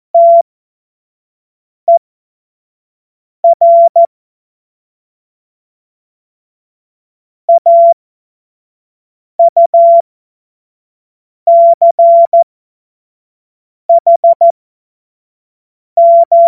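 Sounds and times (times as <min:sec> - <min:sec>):
CW Morse code beeps: 0:00.2 - 0:00.4, 0:03.4 - 0:04.1, 0:07.5 - 0:08.0, 0:09.4 - 0:10.0, 0:11.5 - 0:12.4, 0:13.9 - 0:14.5, 0:16.0 - 0:16.4.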